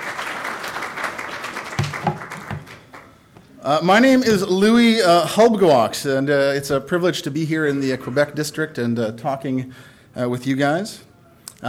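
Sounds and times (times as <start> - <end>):
audience applause: 0.0 - 3.2
speech: 3.7 - 11.6.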